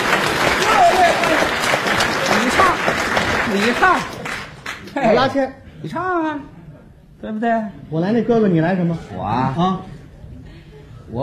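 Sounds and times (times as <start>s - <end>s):
audience applause: 0.0s - 4.9s
speech: 3.5s - 4.2s, 5.0s - 6.6s, 7.2s - 9.9s.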